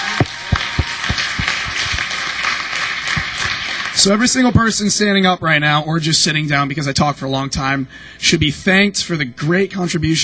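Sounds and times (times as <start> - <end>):
round of applause, many hands clapping: 0.0 - 4.3
speech: 4.0 - 10.2.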